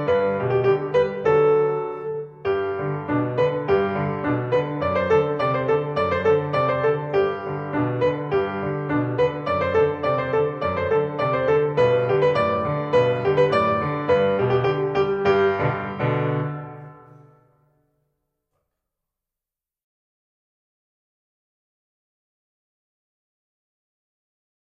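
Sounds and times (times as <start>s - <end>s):
piano accompaniment: 0.0s - 17.9s.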